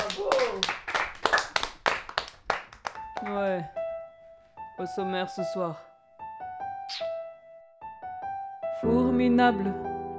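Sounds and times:
small group applause: 0.0s - 3.8s
speech: 3.2s - 3.8s, 4.8s - 5.9s, 8.8s - 9.9s.

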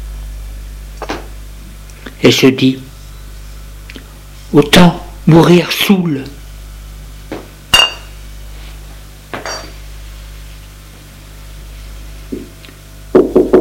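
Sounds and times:
speech: 2.2s - 2.9s, 4.5s - 6.4s
glass clinking: 7.7s - 8.1s, 9.4s - 9.8s
knocking on a door: 13.2s - 13.6s.

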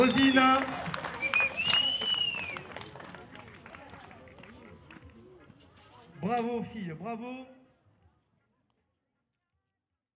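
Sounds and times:
speech: 0.0s - 0.9s, 6.2s - 7.6s
crowd applauding a runner: 0.0s - 5.2s.

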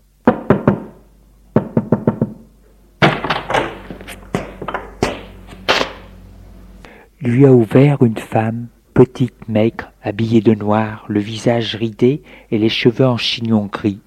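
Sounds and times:
knocking on a door: 0.2s - 3.7s
speech: 7.2s - 14.0s.

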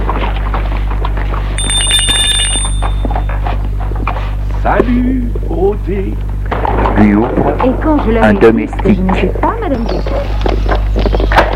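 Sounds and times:
low hum: 0.0s - 11.5s
hotel electric doorbell buzzing: 1.6s - 3.4s
speech: 5.9s - 6.3s, 7.0s - 10.6s.

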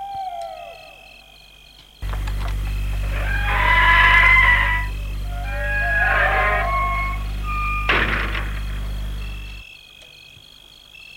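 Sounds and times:
gate opening: 2.0s - 9.6s.

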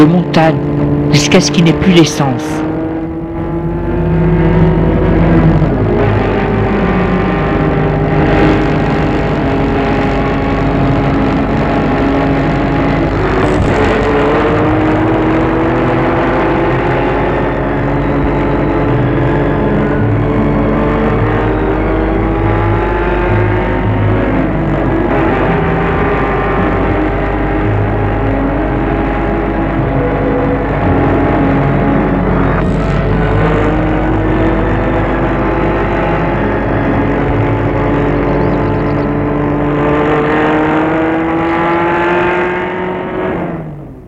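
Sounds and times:
speech: 0.0s - 2.7s
car driving on mountain road: 0.0s - 44.0s.

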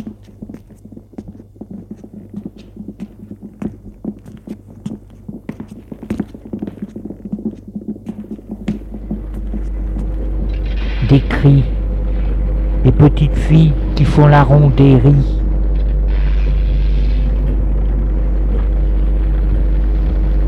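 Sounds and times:
footsteps: 0.0s - 11.6s
rumble: 0.0s - 20.4s
steady low hum: 0.0s - 20.4s
speech: 11.4s - 11.8s, 13.0s - 15.4s.

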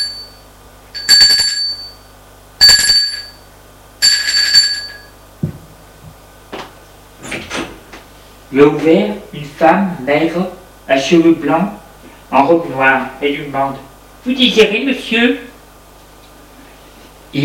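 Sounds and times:
doorbell ringing: 0.0s - 0.4s, 1.0s - 5.2s
speech: 8.5s - 15.5s.

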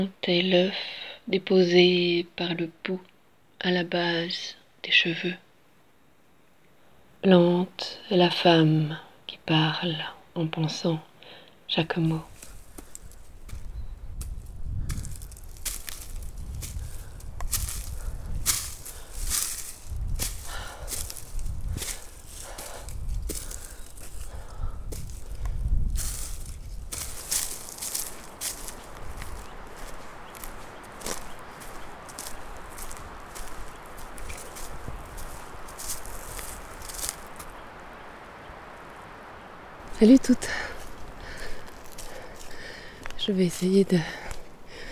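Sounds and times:
speech: 0.0s - 5.4s, 7.2s - 11.1s, 11.7s - 12.3s, 43.4s - 44.2s
footsteps of a person walking, crunchy and scuffing: 11.9s - 44.8s.

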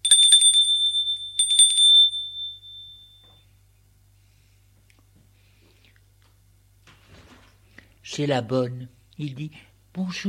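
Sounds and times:
doorbell ringing: 0.0s - 3.5s
speech: 8.2s - 10.2s.

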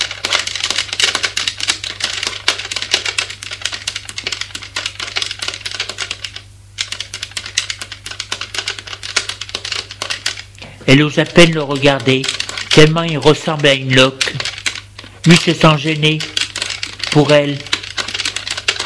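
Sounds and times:
keyboard typing a document: 0.0s - 18.8s
low steady hum: 0.0s - 18.8s
speech: 10.9s - 14.5s, 15.2s - 16.4s, 17.2s - 17.7s.

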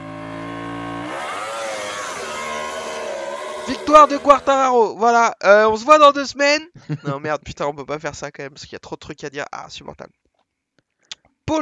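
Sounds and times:
MotoGP racing motorcycle engine revving: 0.0s - 4.8s
speech: 3.7s - 10.2s, 11.5s - 11.6s
laughter: 6.8s - 7.4s.

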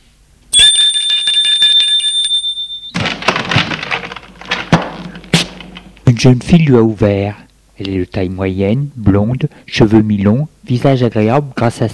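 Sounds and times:
doorbell ringing: 0.6s - 4.6s
speech: 6.2s - 11.9s.

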